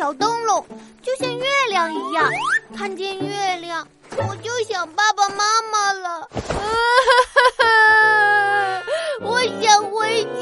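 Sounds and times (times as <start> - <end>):
speech: 0.0 - 8.0
voice actor imitating a little fox character crying: 6.6 - 9.3.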